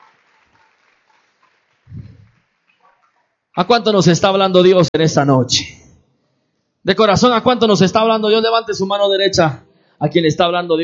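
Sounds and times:
audience applauding: 0.0s - 3.3s
speech: 3.6s - 5.8s, 6.8s - 10.8s.

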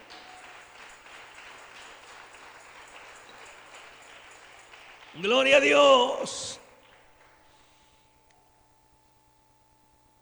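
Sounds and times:
audience applause: 0.0s - 7.4s
speech: 5.2s - 6.6s.

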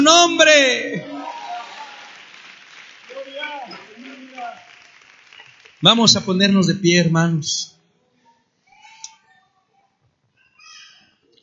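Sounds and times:
voices calling and cheering: 0.0s - 6.6s
audience applause: 1.0s - 6.6s
speech: 5.8s - 7.7s.

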